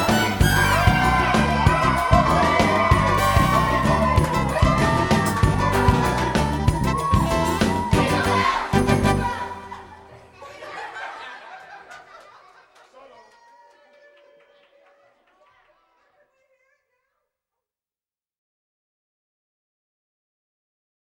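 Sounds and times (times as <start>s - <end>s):
Christmas song: 0.0s - 10.4s
laughter: 0.0s - 16.8s.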